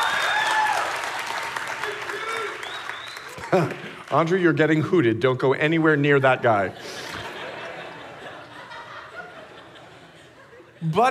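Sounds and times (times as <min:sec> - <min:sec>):
audience clapping: 0:00.0 - 0:04.9
laughter: 0:03.4 - 0:04.1, 0:06.6 - 0:11.0
speech: 0:03.5 - 0:06.8.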